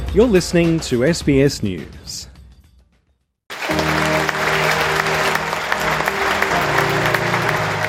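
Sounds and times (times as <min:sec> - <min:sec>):
speech: 0:00.1 - 0:02.3
applause in a packed theatre at Sydney Town Hall: 0:03.5 - 0:07.8.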